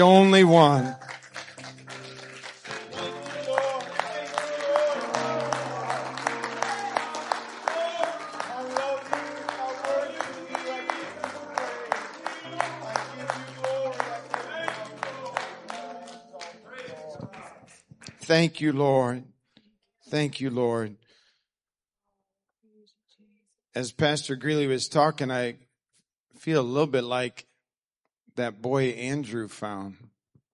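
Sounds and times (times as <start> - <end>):
speech: 0.0 - 1.1, 18.3 - 19.3, 20.1 - 21.0, 23.7 - 25.6, 26.4 - 27.5, 28.4 - 30.1
audience hand clapping in praise: 0.0 - 18.4.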